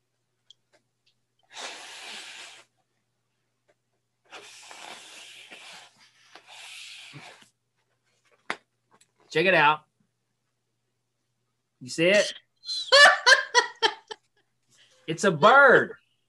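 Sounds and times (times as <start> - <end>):
balloon being twisted into a balloon animal: 4.3 - 7.6
speech: 9.3 - 9.9, 11.8 - 12.4, 15.1 - 16.0.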